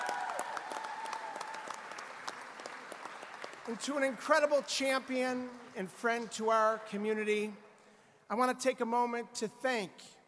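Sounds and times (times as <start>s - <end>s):
crowd applauding: 0.0s - 5.8s
speech: 3.7s - 7.6s, 8.3s - 10.2s.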